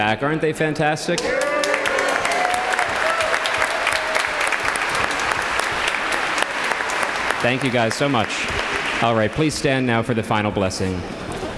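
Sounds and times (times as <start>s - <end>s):
speech: 0.0s - 1.6s, 7.4s - 11.3s
audience applause for choir: 1.2s - 10.1s.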